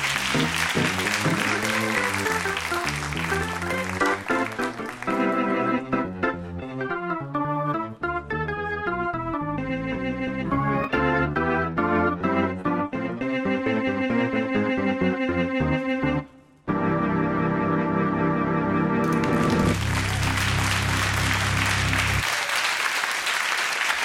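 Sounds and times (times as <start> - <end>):
audience applause: 0.0 - 5.8, 19.0 - 24.0
cheerful organ music: 0.0 - 22.2.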